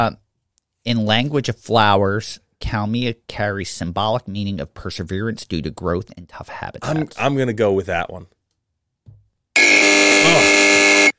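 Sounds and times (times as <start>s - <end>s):
speech: 0.0s - 0.2s, 0.8s - 8.4s
game show buzzer: 9.6s - 11.1s.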